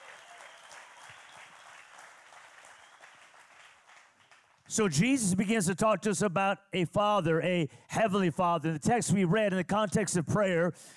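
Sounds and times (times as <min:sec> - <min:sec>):
audience clapping: 0:00.0 - 0:04.8
speech: 0:04.7 - 0:10.9.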